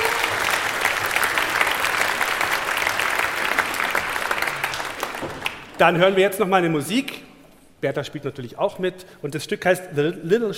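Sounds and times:
applause: 0:00.0 - 0:06.0
speech: 0:05.8 - 0:10.5.

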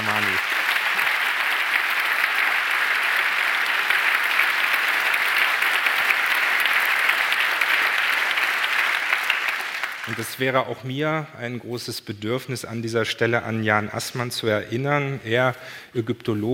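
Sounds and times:
audience applause: 0:00.0 - 0:10.5
speech: 0:10.2 - 0:16.5.

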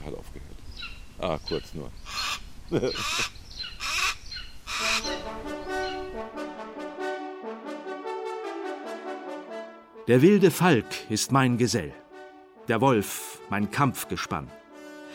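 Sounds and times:
speech: 0:00.1 - 0:03.4, 0:10.1 - 0:12.0, 0:12.7 - 0:14.6
golden eagle calling: 0:00.8 - 0:06.2.

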